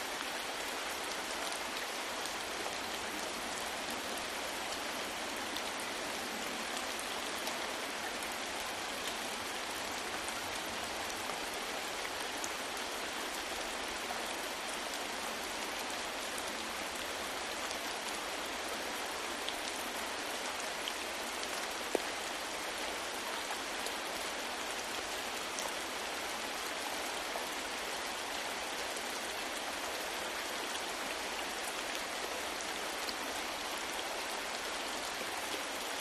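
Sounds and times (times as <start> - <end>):
moderate rain on leaves: 0.0 - 35.9.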